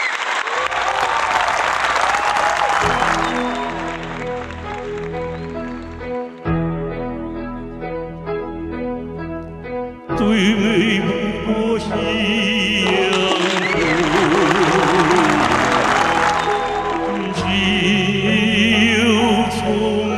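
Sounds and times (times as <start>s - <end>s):
audience applause: 0.0s - 6.5s, 12.9s - 17.8s
melodic music intro with sustained tones: 2.8s - 20.1s.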